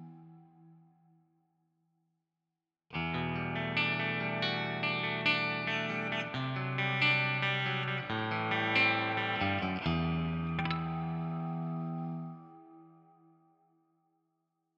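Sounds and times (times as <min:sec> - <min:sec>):
clean split coil humbucker electric guitar: 0:00.0 - 0:00.9, 0:02.9 - 0:13.6.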